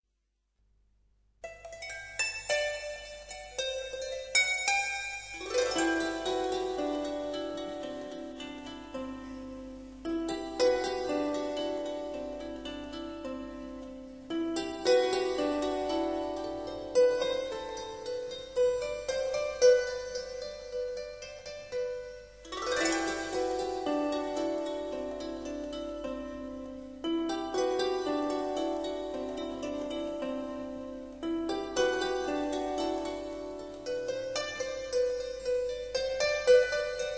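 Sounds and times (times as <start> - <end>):
strings: 1.4 - 37.1.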